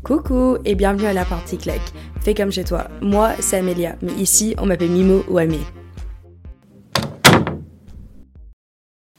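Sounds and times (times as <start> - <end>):
speech: 0.1 - 5.8
door handle rattling and creaking: 6.9 - 7.7.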